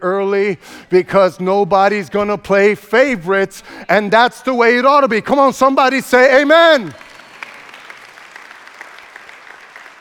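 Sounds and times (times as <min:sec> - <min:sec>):
speech: 0:00.0 - 0:07.0
sparse audience clapping: 0:06.3 - 0:09.9.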